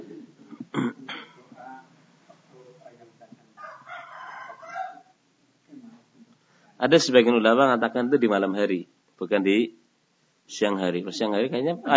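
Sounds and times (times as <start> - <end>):
quiet murmuring: 0.0 - 9.8, 10.5 - 11.9
rooster crowing: 3.6 - 5.2
speech: 6.8 - 9.8, 10.5 - 11.9.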